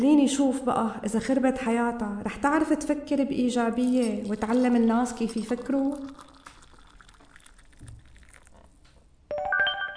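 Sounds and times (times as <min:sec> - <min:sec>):
speech: 0:00.0 - 0:06.3
phone message notification tone: 0:09.3 - 0:09.9.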